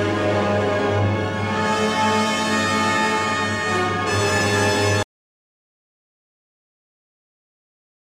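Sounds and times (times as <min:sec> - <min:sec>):
Wagner tuba playing: 0:00.0 - 0:05.0.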